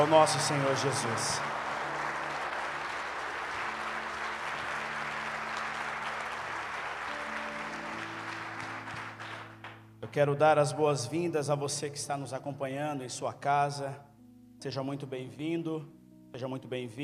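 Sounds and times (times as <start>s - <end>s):
speech: 0.0s - 1.5s, 10.1s - 17.0s
audience applause: 0.0s - 9.8s.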